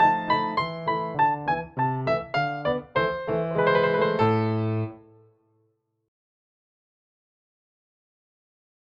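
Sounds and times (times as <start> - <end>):
Nord Grand fortepiano: 0.0 - 5.1.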